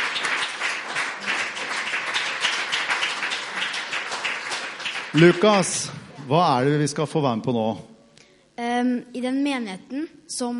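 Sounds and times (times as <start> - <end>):
audience applause: 0.0 - 6.3
speech: 5.1 - 7.9, 8.8 - 10.5.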